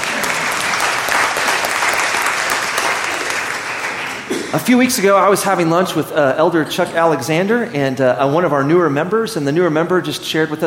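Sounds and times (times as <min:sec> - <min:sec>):
audience applause: 0:00.0 - 0:05.4
speech: 0:04.5 - 0:10.6.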